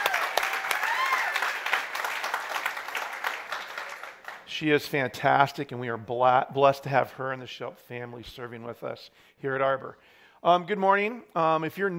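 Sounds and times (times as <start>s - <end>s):
round of applause: 0.0s - 4.5s
speech: 4.6s - 11.9s.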